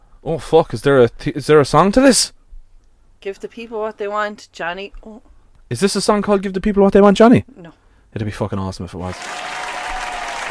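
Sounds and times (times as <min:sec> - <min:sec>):
speech: 0:00.2 - 0:02.4, 0:03.2 - 0:09.4
crowd noise sound effect from hotkey: 0:09.1 - 0:10.4.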